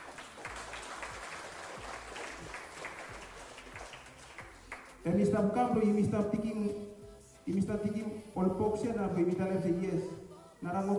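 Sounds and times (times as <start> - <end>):
audience clapping: 0.0 - 5.0
speech: 5.0 - 6.9, 7.5 - 10.9.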